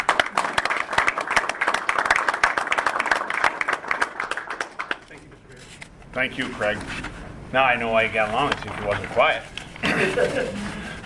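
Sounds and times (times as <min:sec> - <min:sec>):
round of applause: 0:00.0 - 0:05.2
speech: 0:06.2 - 0:10.7
laughter: 0:09.8 - 0:11.0.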